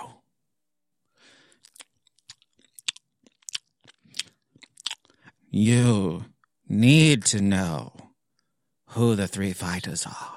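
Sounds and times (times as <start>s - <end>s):
chewing and biting while eating eggs: 1.5s - 5.4s
speech: 5.6s - 8.0s, 9.0s - 10.3s.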